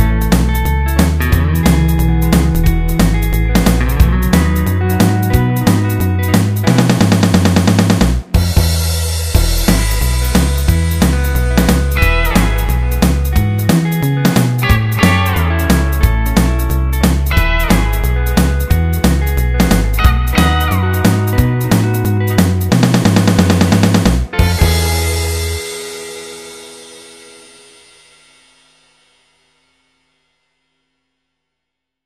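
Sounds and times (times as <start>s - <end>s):
boogie backing music: 0.0s - 27.9s.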